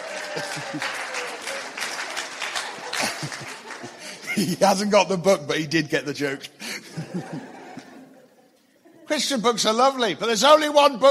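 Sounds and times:
crowd applauding: 0:00.0 - 0:04.8
laughter: 0:00.0 - 0:04.9, 0:06.6 - 0:09.4
speech: 0:00.4 - 0:01.1, 0:03.0 - 0:03.6, 0:04.4 - 0:07.5, 0:09.1 - 0:11.0.

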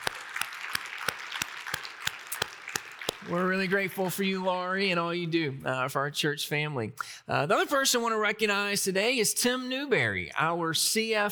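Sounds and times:
audience applause: 0:00.0 - 0:04.5
speech: 0:03.2 - 0:11.2.

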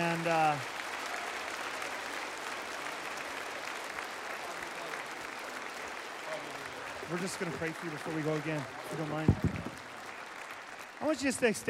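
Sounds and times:
church congregation applauding: 0:00.0 - 0:11.6
speech: 0:00.1 - 0:00.8, 0:07.1 - 0:09.8, 0:11.0 - 0:11.6.

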